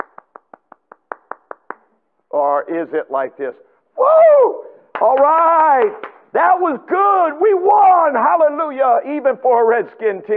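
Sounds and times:
quick hand claps: 0.0 - 1.9, 4.9 - 6.2
speech: 2.4 - 10.3.

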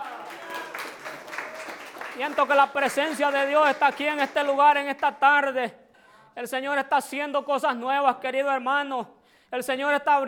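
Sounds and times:
audience clapping hands: 0.0 - 5.2
speech: 2.2 - 5.8, 6.4 - 10.2.

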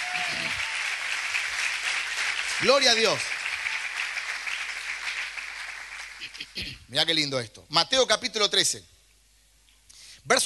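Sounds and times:
audience applauding: 0.0 - 6.6
speech: 2.6 - 3.3, 6.6 - 8.9, 10.3 - 10.4.

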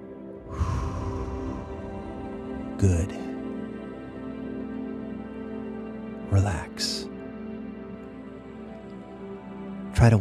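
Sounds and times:
low sustained tonal hum: 0.0 - 6.2
slow deep exhale during a guided relaxation breathing exercise: 0.4 - 2.8
speech: 2.8 - 3.2, 6.3 - 7.0, 10.0 - 10.2.

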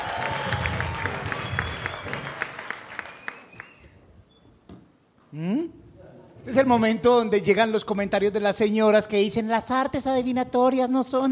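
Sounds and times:
crowd applause: 0.0 - 3.8
speech: 6.5 - 11.2.

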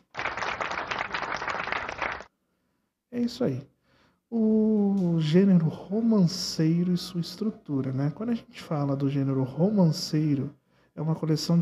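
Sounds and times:
applause: 0.0 - 2.3
speech: 3.1 - 3.7, 4.3 - 11.6.

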